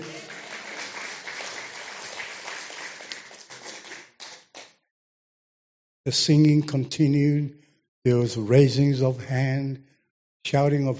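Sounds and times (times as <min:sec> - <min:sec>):
small group clapping: 0:00.0 - 0:04.8
speech: 0:06.0 - 0:10.9.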